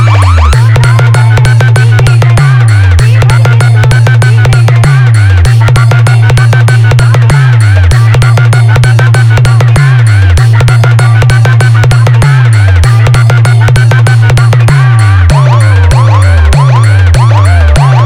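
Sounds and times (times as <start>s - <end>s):
ambulance siren: 0.0s - 1.4s, 15.3s - 18.0s
running competition music mix: 0.0s - 18.0s.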